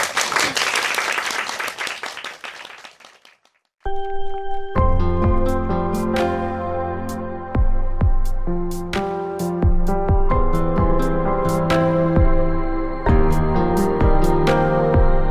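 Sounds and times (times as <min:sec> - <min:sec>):
audience applause before a live song performance: 0:00.0 - 0:03.7
music: 0:03.8 - 0:15.2.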